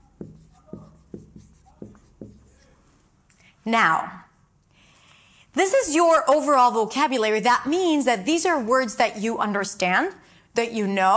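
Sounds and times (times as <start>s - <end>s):
writing on a board: 0.0s - 2.8s
speech: 3.6s - 4.2s, 5.6s - 11.1s.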